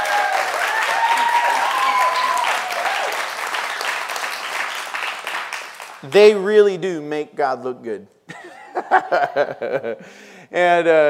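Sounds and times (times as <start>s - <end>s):
audience applause: 0.0s - 6.0s
speech: 6.0s - 11.0s
laughter: 8.3s - 10.0s.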